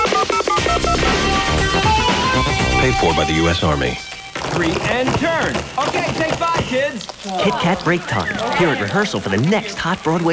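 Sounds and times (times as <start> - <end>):
touch-tone telephone being dialed: 0.0 - 2.6
speech: 2.8 - 10.3.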